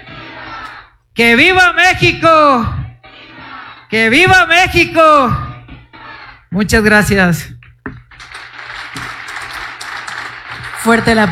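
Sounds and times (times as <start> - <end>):
speech: 1.2 - 2.8, 3.9 - 5.5, 6.5 - 7.5, 10.8 - 11.2
audience applause: 8.1 - 11.2.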